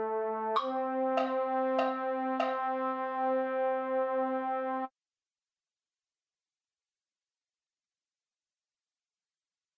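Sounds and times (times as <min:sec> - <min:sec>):
MIDI baritone instrument: 0:00.0 - 0:04.9.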